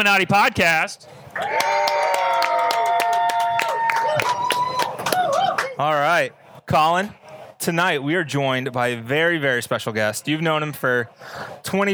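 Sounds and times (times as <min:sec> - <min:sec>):
speech: 0:00.0 - 0:02.4, 0:05.8 - 0:11.9
live audience cheering: 0:01.4 - 0:05.8.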